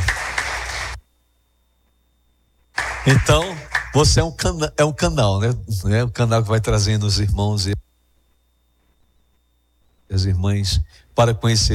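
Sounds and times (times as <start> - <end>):
audience applause: 0.0 - 1.0, 2.8 - 4.0
speech: 3.0 - 7.8, 10.1 - 11.7.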